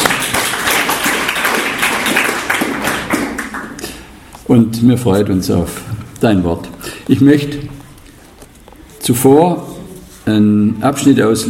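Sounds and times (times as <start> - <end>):
audience applause: 0.0 - 4.0
speech: 4.5 - 7.8, 9.1 - 9.7, 10.3 - 11.4.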